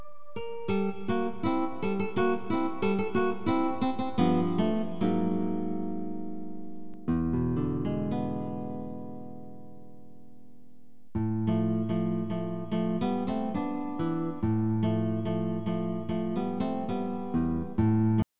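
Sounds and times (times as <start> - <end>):
guitar prelude: 0.0 - 18.2.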